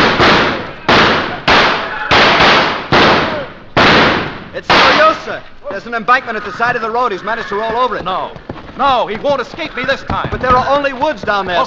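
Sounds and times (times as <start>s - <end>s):
gunshots fired at a fleeing man: 0.0s - 5.4s
speech: 4.6s - 11.6s.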